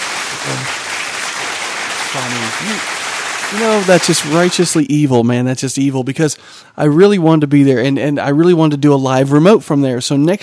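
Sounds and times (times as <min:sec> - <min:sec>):
applause sound effect: 0:00.0 - 0:04.9
speech: 0:02.1 - 0:10.4.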